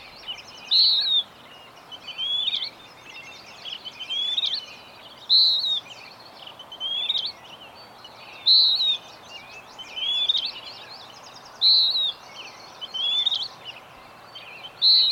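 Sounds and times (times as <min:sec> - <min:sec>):
several birds chirping: 0:00.0 - 0:15.1.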